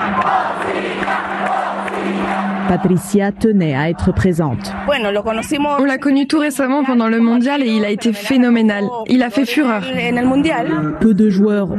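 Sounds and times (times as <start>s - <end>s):
crowd of football supporters cheering new goalkeeper in Santiago: 0.0s - 5.4s
speech: 2.7s - 11.7s.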